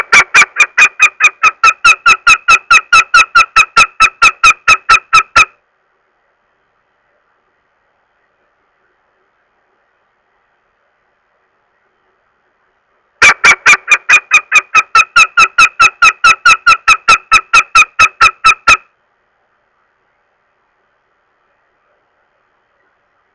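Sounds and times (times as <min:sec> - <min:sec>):
northern goshawk uttering harsh nasal kek calls: 0:00.0 - 0:05.6, 0:13.2 - 0:18.9.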